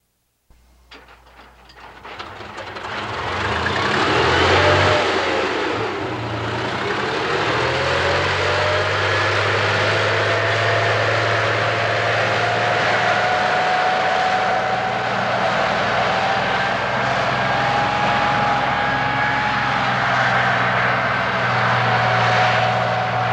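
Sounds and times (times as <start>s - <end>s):
tank driving over small ups, downs and hills: 0.8s - 23.3s.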